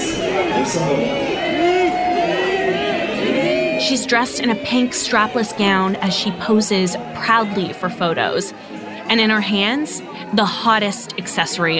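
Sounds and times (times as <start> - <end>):
crowd of fans shouting: 0.0 - 11.7
speech: 0.6 - 1.6, 3.8 - 11.7.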